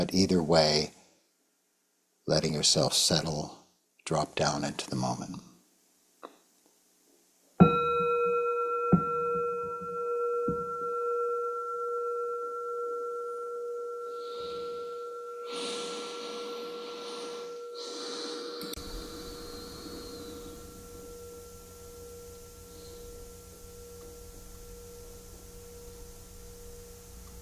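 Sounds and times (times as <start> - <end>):
speech: 0.0 - 1.0, 2.3 - 5.5
meditation bell ringing: 7.6 - 27.4.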